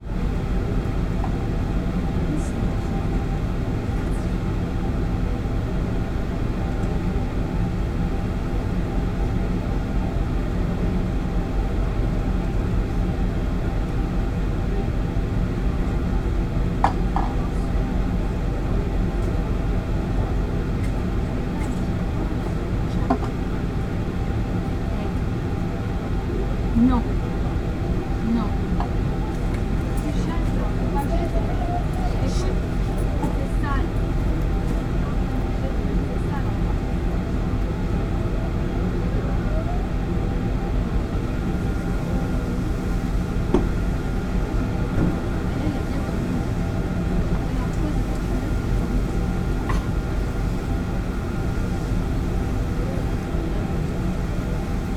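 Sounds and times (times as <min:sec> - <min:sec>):
ferry engine drone in onboard lounge: 0:00.0 - 0:54.9
people chatting in French close by: 0:02.0 - 0:07.0, 0:16.9 - 0:40.6, 0:41.2 - 0:54.9.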